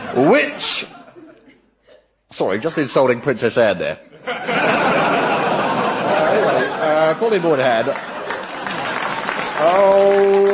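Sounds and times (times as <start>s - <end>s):
laughter: 0.0s - 2.2s, 4.0s - 10.5s
speech: 0.1s - 1.0s, 2.3s - 5.3s, 6.3s - 8.1s, 9.6s - 10.5s
television quiz show studio audience applauding: 6.1s - 10.5s.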